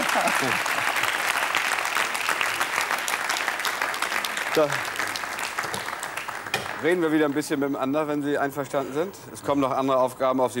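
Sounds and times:
audience applause: 0.0 - 7.5
speech: 0.4 - 0.8, 4.5 - 4.9, 6.8 - 10.5.

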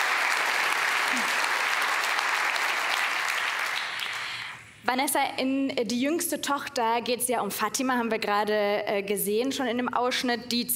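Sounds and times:
audience applause: 0.0 - 4.5
speech: 4.9 - 10.7.

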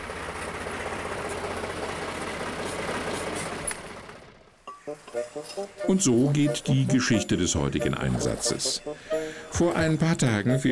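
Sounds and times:
slurry tanker truck diesel engine idling: 0.0 - 4.6
speech: 4.9 - 10.7.

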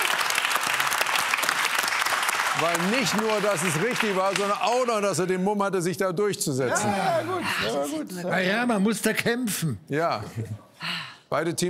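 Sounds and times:
audience clapping loudly: 0.0 - 5.4
speech: 2.6 - 10.7, 11.3 - 11.6.

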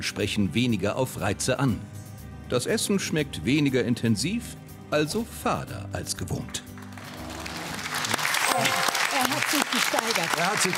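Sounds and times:
speech: 0.0 - 6.7, 9.5 - 10.7
crowd applause: 6.8 - 10.7.

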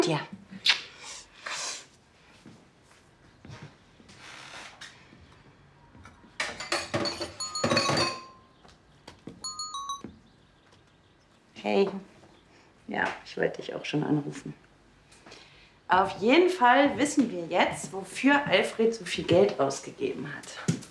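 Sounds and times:
speech: 0.0 - 0.4, 11.6 - 12.1, 12.9 - 14.6, 15.9 - 20.8
cups and dishes clinking while making tea: 6.4 - 8.5, 9.4 - 10.1.

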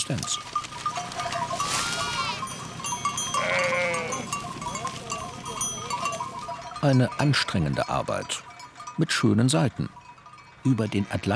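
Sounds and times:
speech: 0.1 - 0.5, 6.8 - 8.4, 9.0 - 10.0, 10.6 - 11.3
sheep bleating in a large herd on farmland on an island within sight of Tenerife: 1.2 - 2.5, 3.2 - 5.2.

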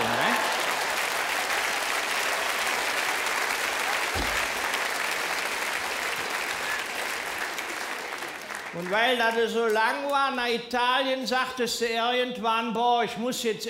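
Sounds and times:
audience applause: 0.0 - 9.8
low thump: 4.2 - 4.6
speech: 8.8 - 13.6.

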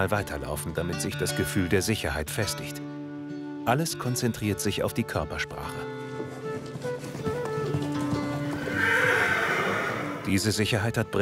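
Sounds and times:
speech: 0.0 - 2.9, 3.7 - 6.0, 10.3 - 11.2
hooves clip-clopping: 4.8 - 10.6
gelding horse whinnying with a high wavering neigh: 6.3 - 10.4.

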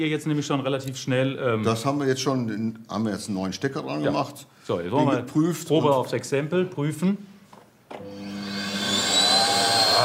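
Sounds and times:
speech: 0.0 - 7.3
vacuum cleaner running after a new plug was fitted: 8.0 - 10.0.

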